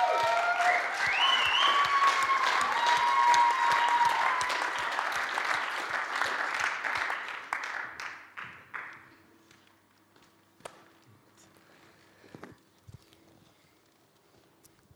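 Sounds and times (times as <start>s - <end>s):
audience applause: 0.0s - 9.1s.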